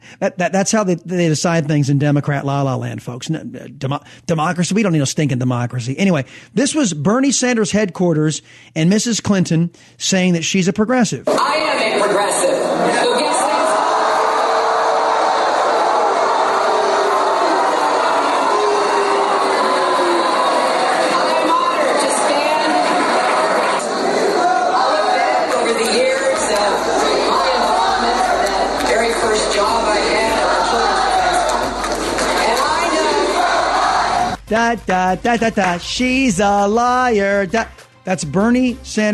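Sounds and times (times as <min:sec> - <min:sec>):
speech: 0:00.1 - 0:13.4, 0:34.7 - 0:39.1
crowd booing: 0:11.3 - 0:34.4.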